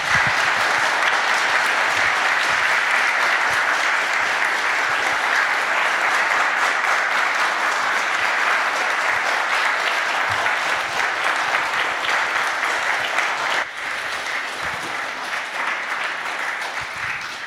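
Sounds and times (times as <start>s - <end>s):
audience applause: 0.0s - 17.4s.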